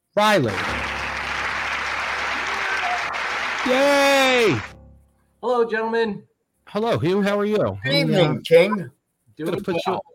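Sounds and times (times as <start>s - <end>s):
speech: 0.2s - 0.7s, 3.6s - 4.7s, 5.4s - 10.1s
audience applause: 0.4s - 4.7s.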